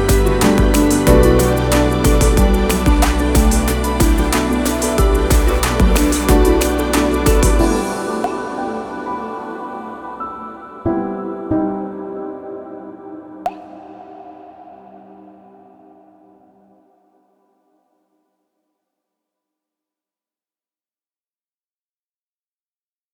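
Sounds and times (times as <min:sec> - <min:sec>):
abstract ambient music: 0:00.0 - 0:16.9.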